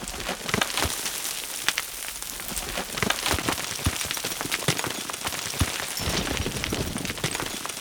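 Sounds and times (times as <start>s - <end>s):
small stones clattering: 0.0s - 7.7s.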